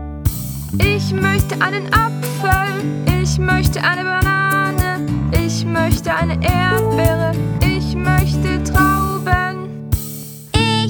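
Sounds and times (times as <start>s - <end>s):
German song: 0.3s - 10.8s.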